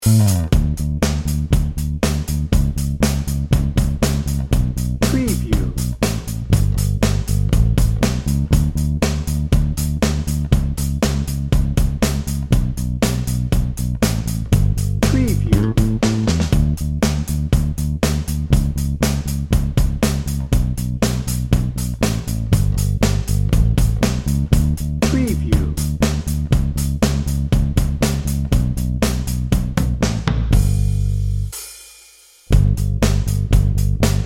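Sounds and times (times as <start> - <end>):
joyful hopeful drum and bass music: 0.0 - 34.2.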